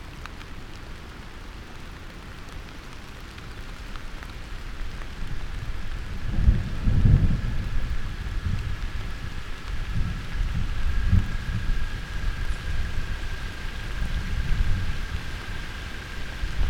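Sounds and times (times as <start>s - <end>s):
storm: 5.2s - 16.6s.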